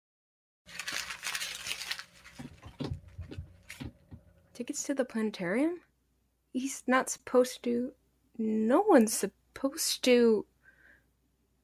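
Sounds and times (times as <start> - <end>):
paper crinkling as a letter is opened by hand: 0.7 - 4.2
speech: 4.6 - 5.9, 6.5 - 10.5.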